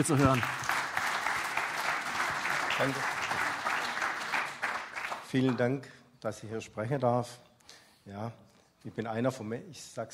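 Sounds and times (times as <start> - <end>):
speech: 0.0 - 0.7, 2.8 - 3.2, 5.3 - 7.4, 8.0 - 10.1
audience applause: 0.0 - 5.6.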